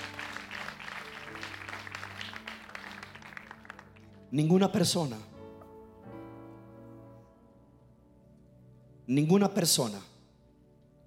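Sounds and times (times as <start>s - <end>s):
audience clapping: 0.0s - 4.2s
speech: 4.3s - 5.3s, 9.1s - 10.1s.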